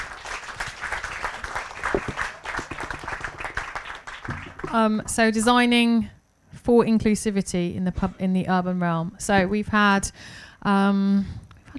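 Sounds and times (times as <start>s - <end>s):
audience round of applause: 0.0s - 4.8s
speech: 4.7s - 11.4s.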